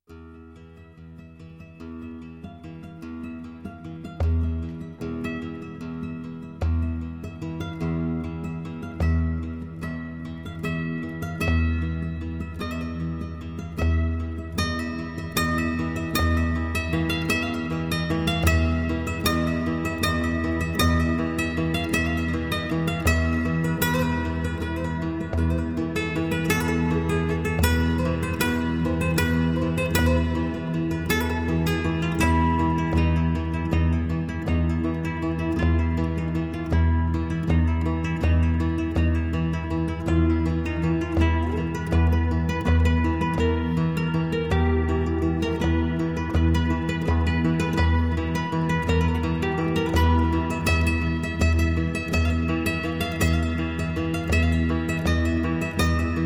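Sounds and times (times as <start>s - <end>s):
flamenco Spanish guitar: 0.1s - 56.2s.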